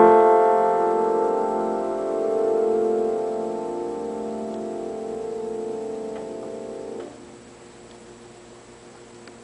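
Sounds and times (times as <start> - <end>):
piano: 0.0 - 7.3.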